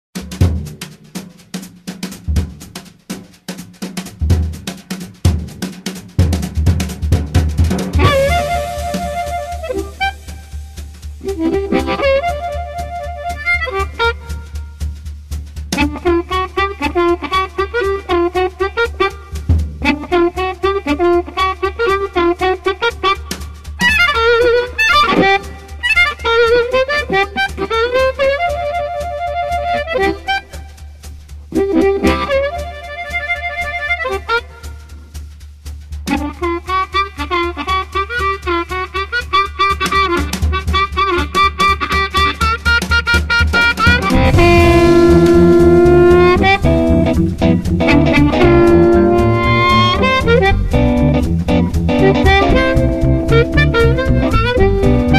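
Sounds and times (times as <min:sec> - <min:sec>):
instrumental music: 0:00.2 - 0:55.1.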